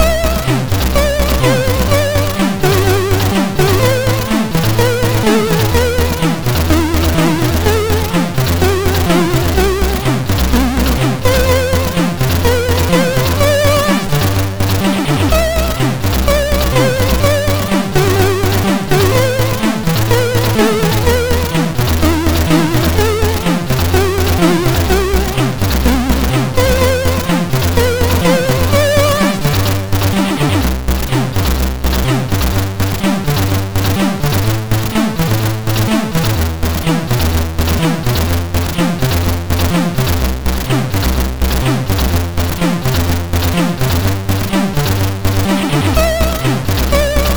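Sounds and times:
chiptune melody on a MOS6581R4 SID chip: 0:00.0 - 0:47.3.

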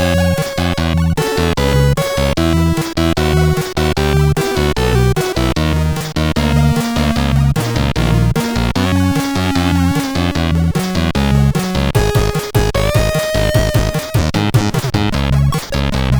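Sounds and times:
MOS 8580 SID chip game music: 0:00.0 - 0:16.1.

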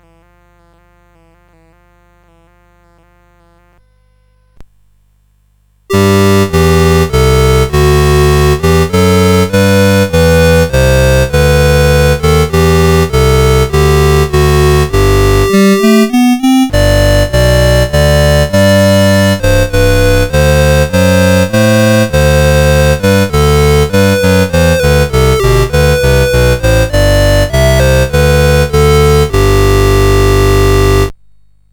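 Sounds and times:
anthem played on CSG 8580R5 sound chip: 0:05.9 - 0:31.1.

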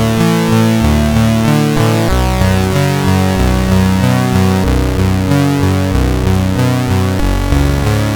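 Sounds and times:
SID chip CSG8580R5 mini melodies: 0:00.0 - 0:08.1.

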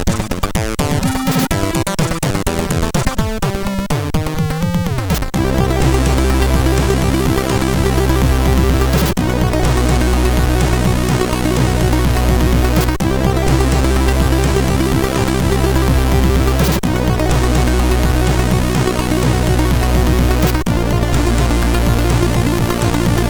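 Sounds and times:
jazzy chiptune music on a MOS6581R3 SID chip: 0:00.0 - 0:23.2.

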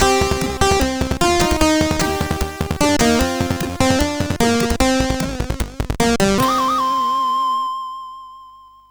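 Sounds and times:
SID chiptune music on a CSG8580R5 chip: 0:00.0 - 0:07.7.

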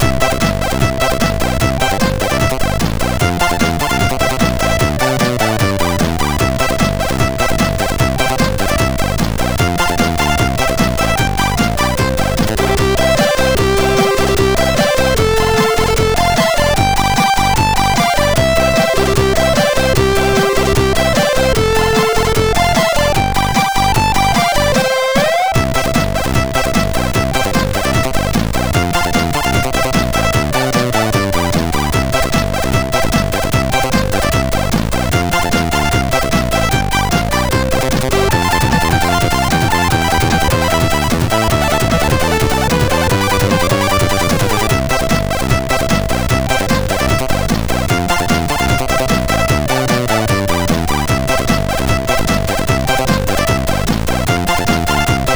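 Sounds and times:
Christmas song on SID MOS6581R2 chip: 0:00.0 - 0:55.3.

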